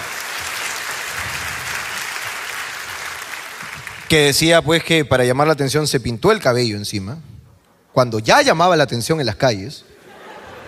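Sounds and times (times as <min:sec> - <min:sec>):
applause from a group of people: 0:00.0 - 0:04.4
speech: 0:04.1 - 0:07.4, 0:08.0 - 0:09.9
laughter: 0:10.0 - 0:10.6.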